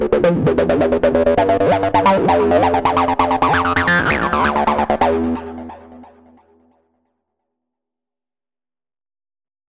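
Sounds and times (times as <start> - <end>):
VB-303 synthesizer quick sequence: 0.0 - 6.4.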